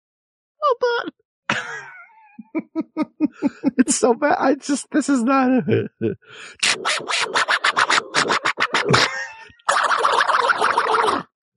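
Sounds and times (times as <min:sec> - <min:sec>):
laughter: 0:01.5 - 0:04.4, 0:05.5 - 0:06.6, 0:08.3 - 0:09.7
speech: 0:02.6 - 0:09.0
person imitating an angry cartoon duck: 0:06.4 - 0:11.3.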